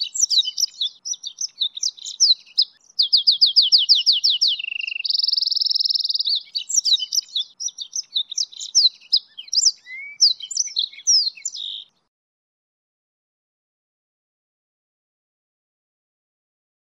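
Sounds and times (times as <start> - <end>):
hybrid of goldfinch and canary: 0.0 - 12.0.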